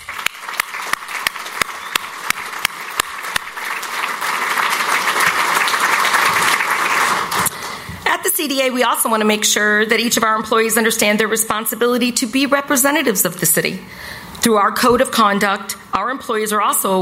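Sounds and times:
crowd applauding: 0.0s - 7.9s
speech: 8.5s - 16.9s.

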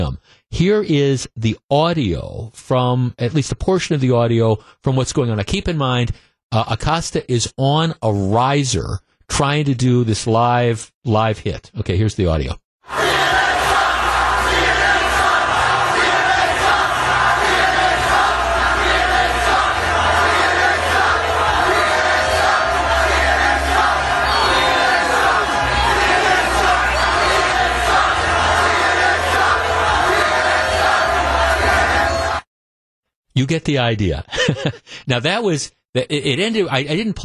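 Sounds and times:
speech: 0.0s - 13.4s, 33.4s - 37.2s
large crowd screaming and chanting: 12.8s - 32.5s
laughter: 34.3s - 35.0s.

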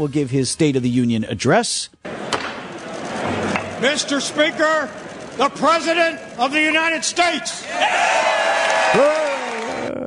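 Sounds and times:
speech: 0.0s - 2.2s, 3.8s - 8.3s, 8.9s - 9.2s
crowd cheering and applauding: 7.5s - 9.9s.

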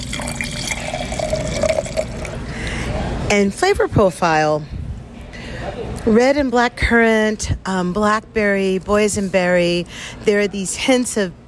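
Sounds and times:
red Zinfandel wine being poured: 0.0s - 2.4s
speech: 3.3s - 4.8s, 5.8s - 11.4s.

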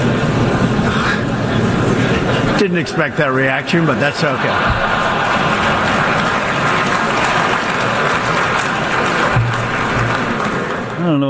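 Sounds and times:
laughter: 1.0s - 10.9s
speech: 2.6s - 5.1s, 11.1s - 11.2s
crowd applauding: 3.8s - 11.1s.

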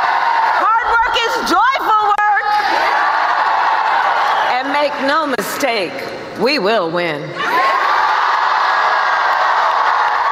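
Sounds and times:
large political rally crowd cheering with whoops and shouts: 0.0s - 4.7s, 7.4s - 10.3s
speech: 4.8s - 7.6s.

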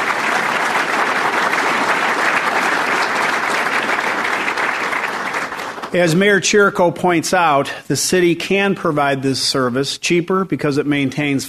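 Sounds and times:
crowd clapping: 0.0s - 6.3s
speech: 5.9s - 11.4s.

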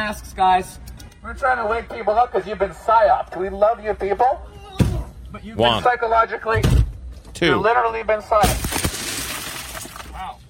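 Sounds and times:
speech: 0.0s - 4.6s, 5.3s - 8.8s
car window glass being smashed: 8.4s - 10.2s.

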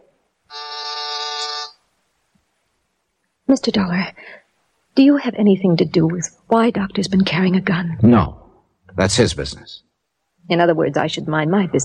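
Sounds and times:
intercom buzzer: 0.5s - 1.8s
speech: 3.5s - 4.4s, 5.0s - 8.4s, 9.0s - 11.8s.

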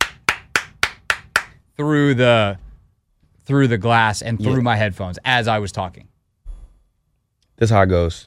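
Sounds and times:
loud sharp hand claps: 0.0s - 1.6s
speech: 1.8s - 2.6s, 3.5s - 6.1s, 7.6s - 8.2s.

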